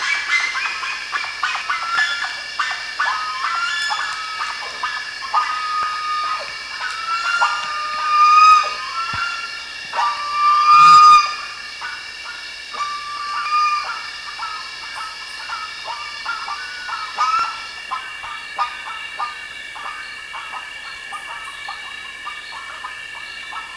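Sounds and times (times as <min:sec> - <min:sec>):
bird whistled calls: 0:00.0 - 0:23.7
continuous high droning: 0:00.0 - 0:23.7.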